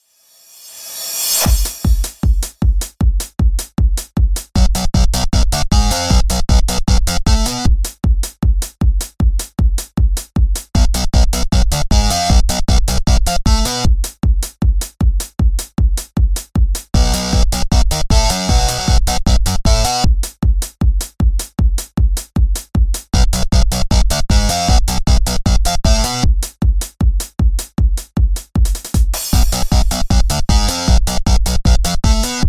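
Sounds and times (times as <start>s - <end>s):
instrumental music: 1.3s - 32.4s.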